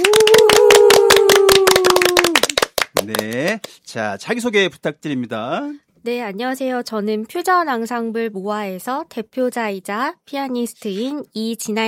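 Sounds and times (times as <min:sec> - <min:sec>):
studio audience clapping in unison at a classical and Korean traditional music event: 0:00.0 - 0:03.8
speech: 0:03.9 - 0:11.8.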